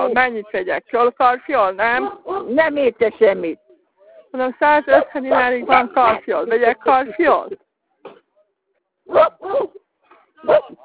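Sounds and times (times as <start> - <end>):
speech: 0.1 - 3.6, 4.3 - 7.6, 9.1 - 9.8, 10.4 - 10.8
dogs barking: 2.0 - 2.6, 4.9 - 6.2, 9.1 - 9.8, 10.4 - 10.8.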